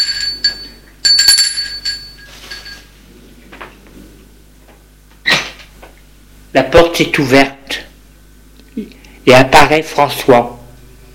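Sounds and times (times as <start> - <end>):
doorbell ringing at apartment door: 0.0 - 2.9
speech: 6.5 - 7.8, 9.3 - 10.6.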